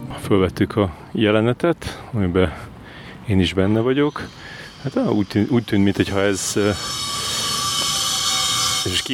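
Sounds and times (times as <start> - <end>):
speech: 0.3 - 2.7, 3.3 - 7.0
angle grinder cutting outside in the yard: 3.8 - 9.1.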